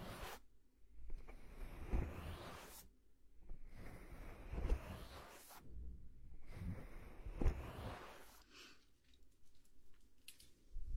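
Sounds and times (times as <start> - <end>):
head and shoulder massage rubbing strokes on skin and hair: 0.0 - 8.5.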